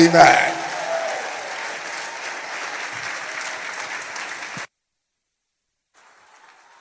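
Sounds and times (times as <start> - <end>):
crowd clapping: 0.0 - 4.7, 6.0 - 6.7.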